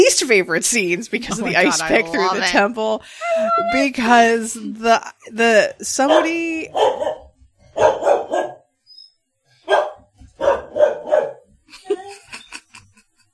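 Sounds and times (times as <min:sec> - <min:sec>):
speech: 0:00.0 - 0:07.2, 0:07.8 - 0:08.5
laughter: 0:01.2 - 0:03.9, 0:11.7 - 0:13.1
Ranger the dog barking an alert: 0:06.0 - 0:08.7, 0:09.6 - 0:11.5.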